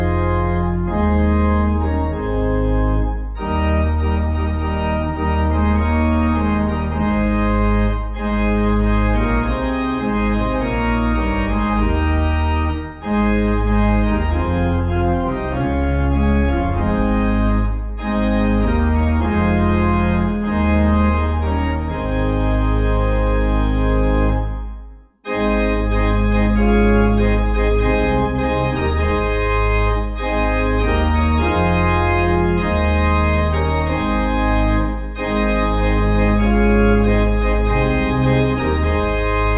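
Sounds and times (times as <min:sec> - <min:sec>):
piano: 0:00.0 - 0:39.5
pipe organ: 0:00.0 - 0:39.5.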